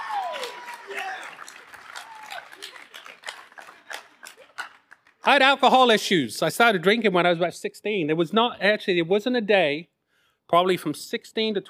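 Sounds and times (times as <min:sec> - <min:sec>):
audience applause: 0:00.0 - 0:05.4
speech: 0:05.3 - 0:09.9, 0:10.5 - 0:11.6.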